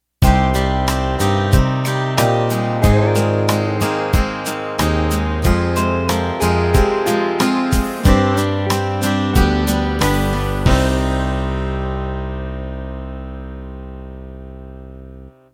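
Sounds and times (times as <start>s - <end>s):
country ballad ending: 0.3s - 14.7s.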